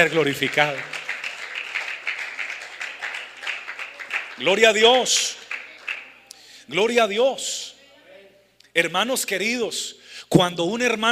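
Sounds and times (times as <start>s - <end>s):
speech: 0.0s - 1.0s, 4.4s - 5.4s, 6.7s - 7.6s, 8.8s - 11.1s
audience applauding: 0.0s - 6.2s.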